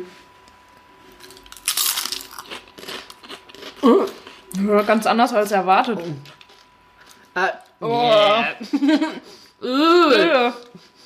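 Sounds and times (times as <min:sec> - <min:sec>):
speech: 0:00.0 - 0:00.2, 0:03.8 - 0:06.4, 0:07.4 - 0:10.9
faint steady hum: 0:00.0 - 0:11.0
biting into a green seaweed-like snack: 0:01.0 - 0:04.6
laughter: 0:08.4 - 0:09.4.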